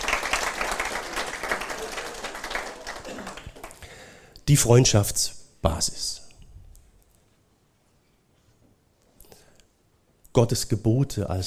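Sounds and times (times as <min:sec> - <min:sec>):
audience applause: 0:00.0 - 0:04.1
speech: 0:04.5 - 0:06.2, 0:10.4 - 0:11.4.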